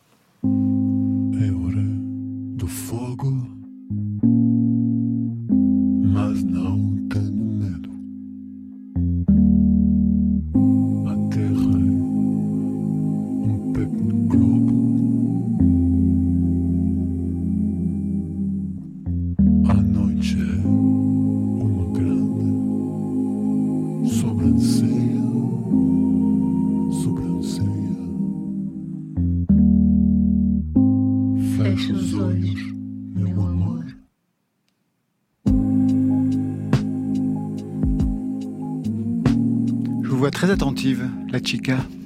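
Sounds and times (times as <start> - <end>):
reworked fado music for film end credits: 0.4 - 34.0, 35.5 - 42.0
speech: 40.6 - 42.0.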